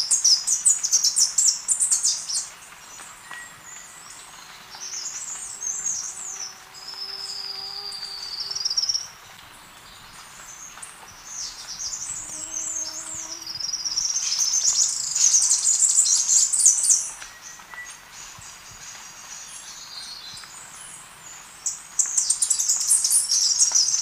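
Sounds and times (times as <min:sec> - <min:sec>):
Three-striped Warbler singing in Ecuador: 0:00.0 - 0:23.9.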